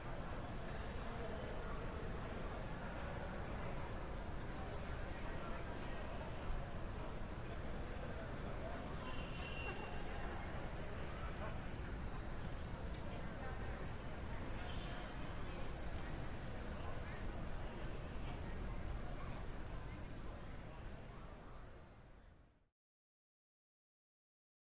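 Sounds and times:
airport interior ambience: 0.0s - 22.6s.

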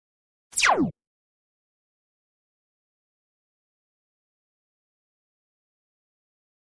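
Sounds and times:
laser fire: 0.6s - 0.9s.

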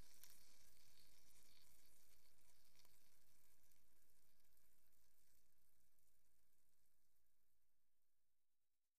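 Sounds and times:
food sizzling while frying: 0.0s - 5.4s.

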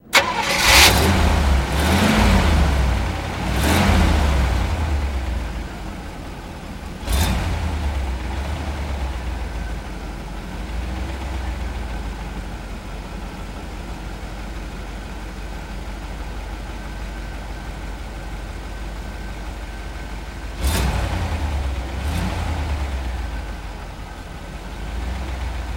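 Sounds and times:
English taxi starting and idling: 0.0s - 25.7s.

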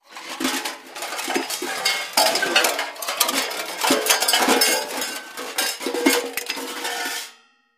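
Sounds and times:
junk crashing: 0.0s - 7.2s.

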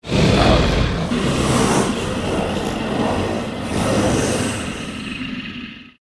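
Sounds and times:
monster sounds: 0.0s - 6.0s.

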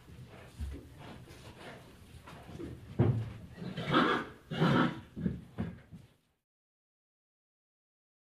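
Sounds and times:
irritated horses in stall: 0.0s - 6.4s.

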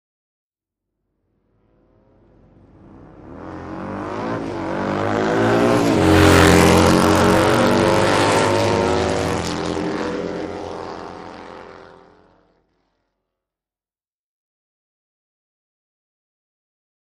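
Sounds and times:
motorcycles road racing: 1.6s - 12.7s.

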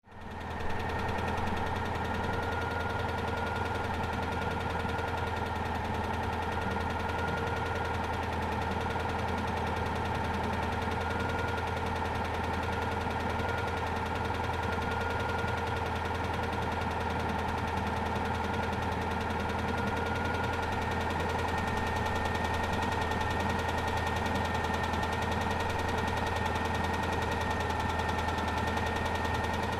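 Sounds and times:
Citroen Deux Chevaux engine idling with valves knocking: 0.1s - 29.7s.

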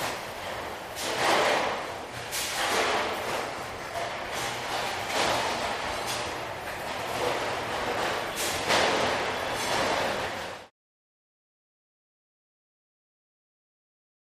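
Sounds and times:
big busy factory: 0.0s - 10.7s.

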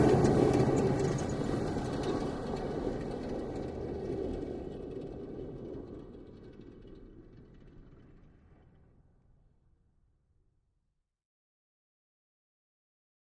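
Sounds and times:
Humvee driving various maneuvers: 0.0s - 7.0s.

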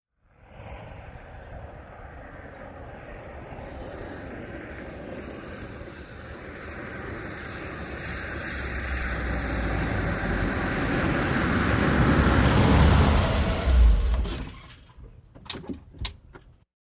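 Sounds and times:
Aston Montego car arriving slowly and switching off outside: 8.6s - 16.6s.

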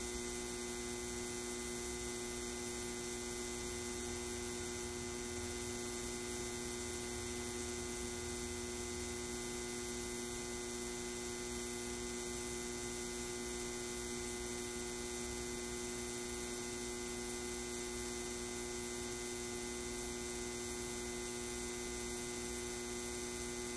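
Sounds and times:
neon light buzzing: 0.0s - 23.7s.

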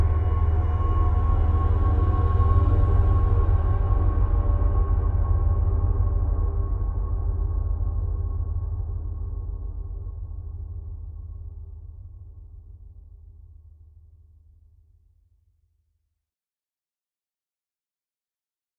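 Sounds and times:
deep space drone bed: 0.0s - 13.8s.

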